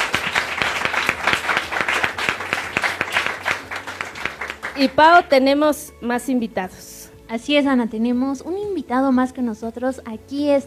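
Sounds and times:
audience applause: 0:00.0 - 0:05.0
speech: 0:04.8 - 0:10.6.

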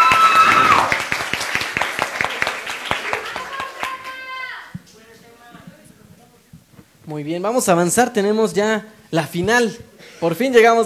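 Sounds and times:
loud audience applause: 0:00.0 - 0:04.8
speech: 0:07.2 - 0:10.8.

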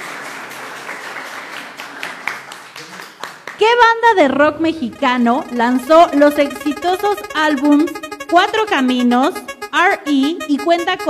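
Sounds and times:
crowd applause: 0:00.0 - 0:03.6
speech: 0:03.6 - 0:11.0.

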